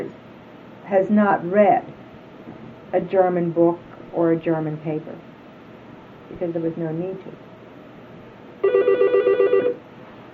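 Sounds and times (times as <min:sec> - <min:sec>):
faint hiss: 0:00.0 - 0:10.3
speech: 0:00.9 - 0:02.0, 0:02.9 - 0:05.3, 0:06.3 - 0:07.5
telephone ringing in the room: 0:08.6 - 0:09.8.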